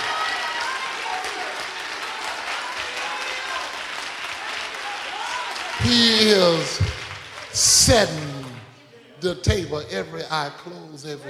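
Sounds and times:
audience clapping hands: 0.0s - 9.8s
speech: 5.8s - 7.0s, 7.6s - 8.4s, 9.2s - 11.2s.

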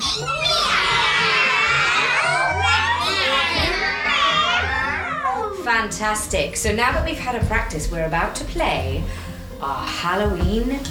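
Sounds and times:
children imitating cat meows: 0.0s - 5.6s
speech: 5.8s - 10.8s.

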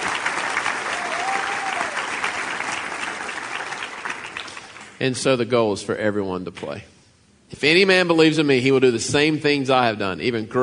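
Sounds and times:
audience applause: 0.0s - 5.0s
speech: 5.0s - 10.6s.

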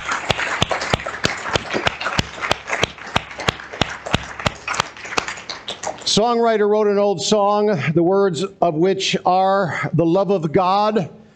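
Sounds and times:
audience clapping hands: 0.0s - 6.4s
speech: 6.1s - 11.2s.

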